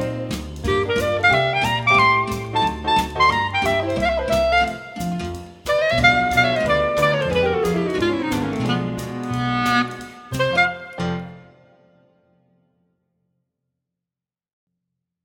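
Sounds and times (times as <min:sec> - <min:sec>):
clarinet: 0:00.0 - 0:11.9.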